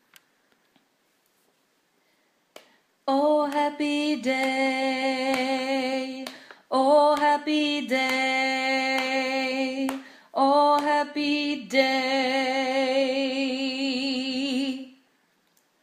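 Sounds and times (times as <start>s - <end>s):
tenor singing: 3.1s - 15.0s.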